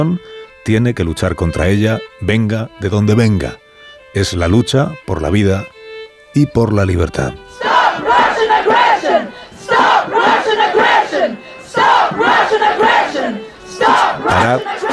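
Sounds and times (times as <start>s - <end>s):
speech: 0.0s - 7.4s, 13.2s - 14.9s
protest crowd shouting against Russian aggression: 7.6s - 14.9s.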